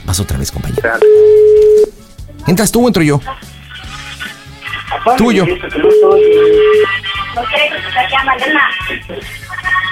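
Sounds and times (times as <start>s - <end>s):
speech: 0.1s - 3.5s, 5.0s - 9.7s
phone ringtone with a busy musical melody over a pulsing beat: 0.8s - 1.9s, 5.8s - 7.1s.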